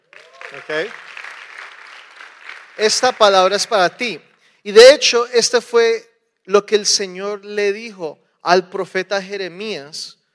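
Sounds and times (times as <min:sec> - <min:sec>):
audience applause: 0:00.0 - 0:04.1
speech: 0:00.5 - 0:01.1, 0:02.8 - 0:10.2.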